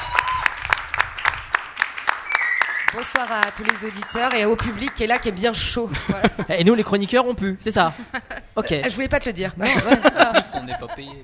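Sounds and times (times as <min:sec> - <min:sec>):
audience clapping in unison for a band at a live show: 0:00.0 - 0:05.6
speech: 0:02.9 - 0:11.2
laughter: 0:05.9 - 0:06.6, 0:09.6 - 0:11.2.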